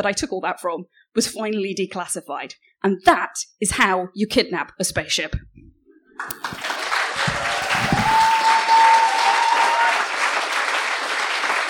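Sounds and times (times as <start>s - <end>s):
speech: 0.0s - 6.8s
large audience applause: 6.2s - 11.6s.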